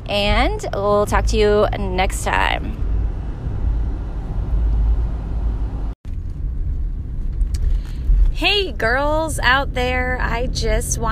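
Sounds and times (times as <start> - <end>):
conversion van engine and road noise inside a moving van: 0.0 - 11.1
speech: 0.1 - 2.9, 8.4 - 11.1.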